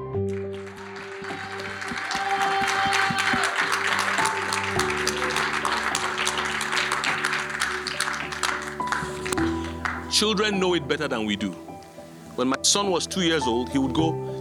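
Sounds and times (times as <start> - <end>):
audience clapping: 0.2 - 10.6
audience shouting praise: 1.2 - 6.6
speech: 10.2 - 11.7, 12.4 - 14.3.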